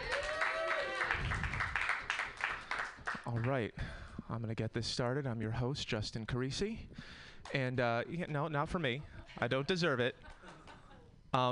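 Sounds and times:
audience applause and clapping: 0.0 - 3.5
speech: 3.3 - 10.3, 11.3 - 11.5.

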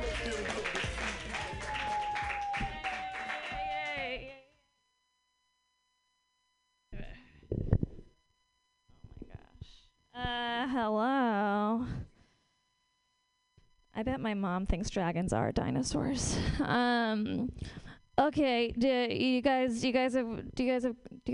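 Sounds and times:
audience applause for a comedian at a stand-up show: 0.0 - 4.2
host cheering: 0.0 - 4.4
speech: 10.2 - 12.0, 14.0 - 21.3.

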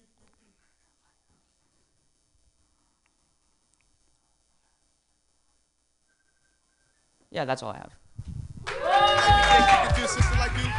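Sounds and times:
speech: 7.4 - 8.0
audience applause: 8.7 - 10.7
people cheering and whooping: 8.7 - 10.7.

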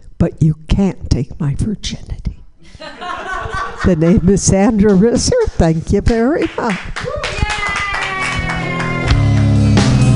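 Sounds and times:
speech: 0.2 - 3.0, 3.8 - 7.0
laughter: 2.8 - 4.7
audience clapping: 6.1 - 10.1
tonal music backdrop: 8.3 - 10.1.

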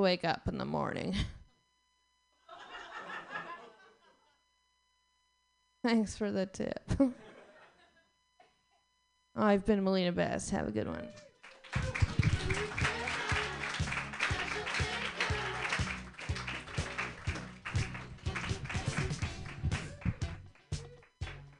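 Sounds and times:
speech: 0.0 - 1.4, 5.8 - 7.3, 9.4 - 11.8
laughter: 2.5 - 4.4, 7.0 - 8.1, 11.6 - 19.2
people cheering: 11.4 - 21.4
people clapping: 11.4 - 21.5.

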